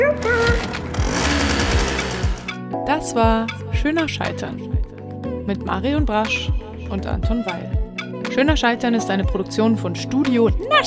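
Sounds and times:
small moped engine rattling as it departs: 0:00.0 - 0:02.6
speech: 0:03.0 - 0:04.9, 0:05.5 - 0:07.8, 0:08.4 - 0:10.8.

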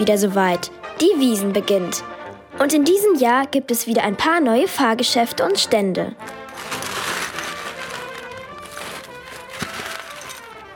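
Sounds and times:
speech: 0:00.0 - 0:06.8
scoop of hard candies pouring into a bag: 0:06.2 - 0:10.7.

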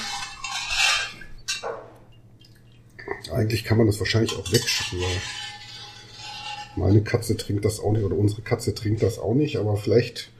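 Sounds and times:
rice being scooped into a bowl: 0:00.0 - 0:01.3, 0:04.3 - 0:07.6
speech: 0:03.3 - 0:05.4, 0:06.8 - 0:10.3.

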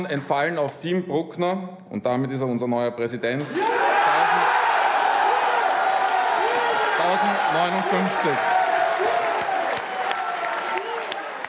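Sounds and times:
speech: 0:00.0 - 0:03.9, 0:07.1 - 0:08.6
crowd of supporters cheering and applauding after a presidential election result: 0:03.5 - 0:11.4
people whooping and shouting: 0:03.6 - 0:11.4.

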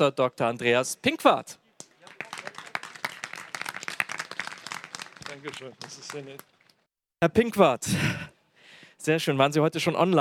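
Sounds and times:
speech: 0:00.0 - 0:01.6, 0:05.4 - 0:06.5, 0:07.2 - 0:08.3, 0:09.0 - 0:10.1
audience applause: 0:01.9 - 0:06.8.

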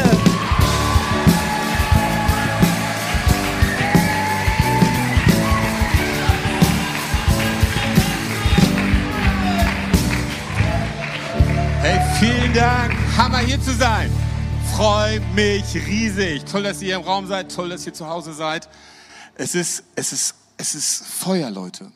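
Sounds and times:
audience applause: 0:00.0 - 0:14.1
speech: 0:12.6 - 0:14.2, 0:14.8 - 0:21.9.

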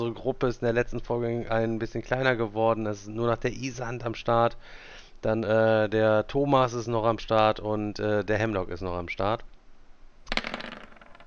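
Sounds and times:
speech: 0:00.0 - 0:09.5
dice clattering and tumbling: 0:10.3 - 0:11.2.

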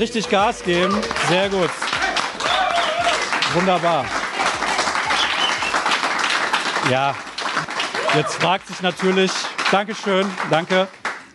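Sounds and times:
speech: 0:00.0 - 0:01.9, 0:03.5 - 0:04.2, 0:06.9 - 0:07.3, 0:08.1 - 0:11.0
audience applause: 0:00.0 - 0:11.3.

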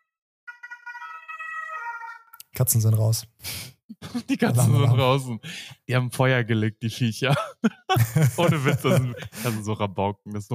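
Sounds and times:
fire engine siren passing by: 0:00.0 - 0:02.2
speech: 0:02.6 - 0:10.5
laughter: 0:03.9 - 0:05.5, 0:07.3 - 0:10.0.

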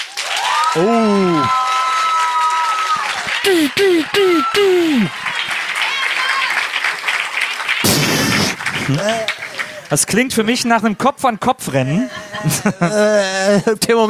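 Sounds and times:
audience applause: 0:00.0 - 0:11.0
speech: 0:00.7 - 0:01.6, 0:03.5 - 0:05.2, 0:08.9 - 0:09.3, 0:09.9 - 0:14.0
laughter: 0:03.0 - 0:13.8.

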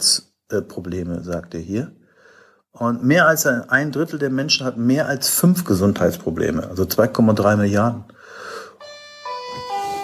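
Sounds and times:
speech: 0:00.5 - 0:02.0, 0:02.8 - 0:08.5
electronic doorbell chime: 0:08.8 - 0:10.0.

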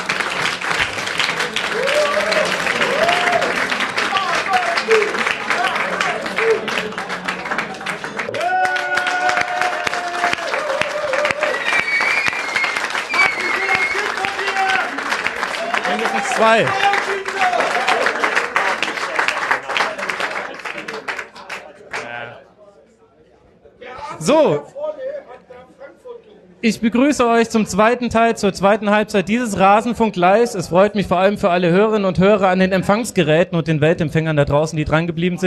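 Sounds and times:
live audience applause: 0:00.0 - 0:22.2
crowd cheering and shouting: 0:01.7 - 0:06.6, 0:08.3 - 0:18.2
speech: 0:16.4 - 0:16.9, 0:24.3 - 0:24.7, 0:26.6 - 0:35.4.

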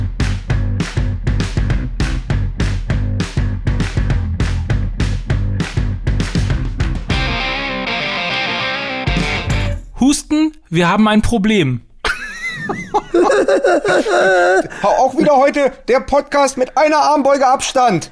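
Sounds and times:
intro music with driving beat and distorted tones: 0:00.0 - 0:09.9
speech: 0:10.7 - 0:11.9, 0:12.7 - 0:18.1
laughter: 0:12.0 - 0:15.8.

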